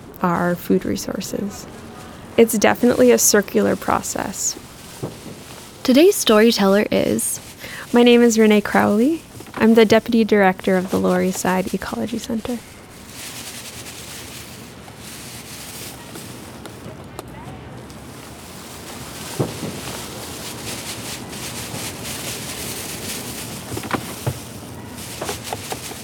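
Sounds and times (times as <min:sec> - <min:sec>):
speech: 0:00.2 - 0:05.2, 0:05.8 - 0:12.8
plastic bag rustling: 0:00.9 - 0:17.0, 0:17.9 - 0:26.0.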